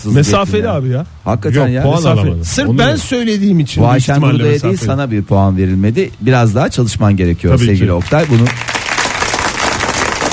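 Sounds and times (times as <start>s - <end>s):
speech: 0.0s - 8.8s
applause sound effect: 7.9s - 10.3s.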